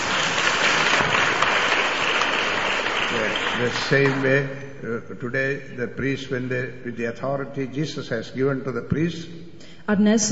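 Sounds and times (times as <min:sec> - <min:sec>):
audience applause: 0:00.0 - 0:04.4
speech: 0:03.6 - 0:10.3.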